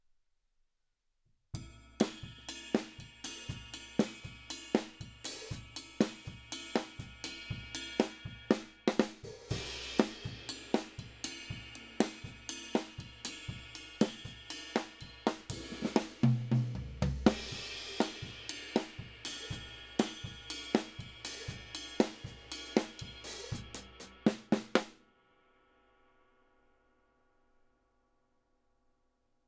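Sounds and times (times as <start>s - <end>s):
drums: 1.6s - 25.1s.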